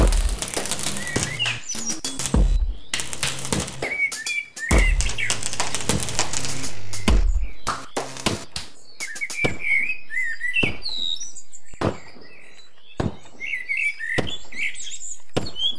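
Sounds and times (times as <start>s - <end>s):
welding: 0.0s - 8.6s
birds: 0.0s - 15.7s.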